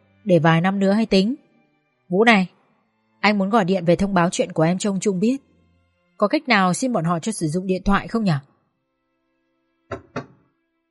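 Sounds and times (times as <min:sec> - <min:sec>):
speech: 0:00.2 - 0:01.4, 0:02.1 - 0:02.6, 0:03.2 - 0:05.5, 0:06.2 - 0:08.5, 0:09.9 - 0:10.1
knocking on a door: 0:09.9 - 0:10.4.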